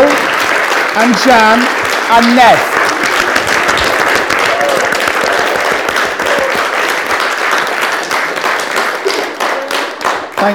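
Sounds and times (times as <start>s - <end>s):
audience applause: 0.0s - 10.5s
speech: 1.0s - 2.7s.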